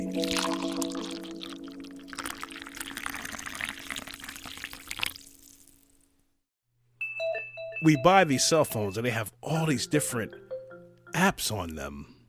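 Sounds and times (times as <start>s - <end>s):
hot coffee pouring into a cup: 0.0s - 5.8s
speech: 7.8s - 10.4s, 11.2s - 12.1s.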